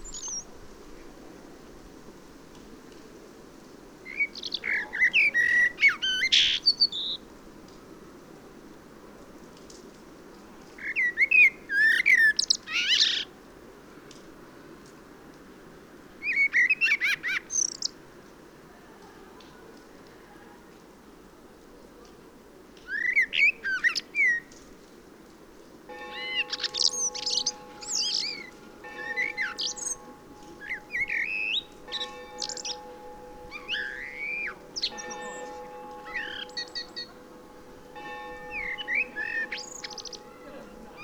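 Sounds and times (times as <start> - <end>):
common blackbird song: 0.0 - 0.5, 4.1 - 7.2, 10.8 - 13.3, 16.2 - 18.0, 22.9 - 24.7, 26.1 - 41.0.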